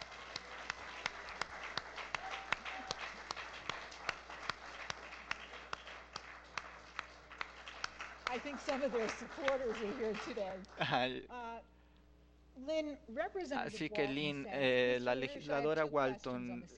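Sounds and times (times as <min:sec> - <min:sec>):
crowd applauding: 0:00.0 - 0:11.1
speech: 0:08.4 - 0:11.4, 0:12.7 - 0:16.7.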